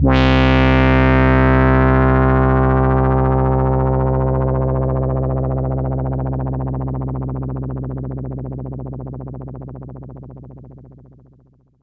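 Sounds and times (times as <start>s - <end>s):
Moog Minimoog synthesizer pad on C2: 0.0s - 7.0s.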